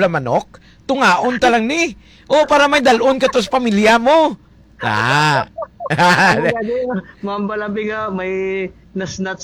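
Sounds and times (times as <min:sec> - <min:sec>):
speech: 0:00.0 - 0:09.4
chicken squawking: 0:02.4 - 0:04.0, 0:04.9 - 0:06.5
laughter: 0:02.9 - 0:04.0, 0:04.8 - 0:07.2.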